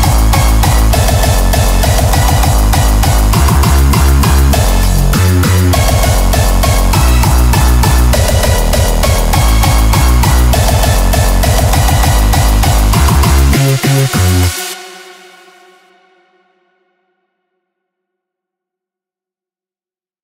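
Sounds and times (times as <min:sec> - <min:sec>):
hardstyle remix: 0:00.0 - 0:15.9.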